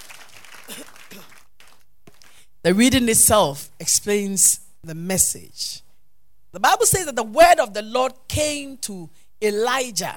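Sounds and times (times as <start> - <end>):
audience clapping hands: 0.0 - 2.5
speech: 2.6 - 5.8, 6.5 - 10.1.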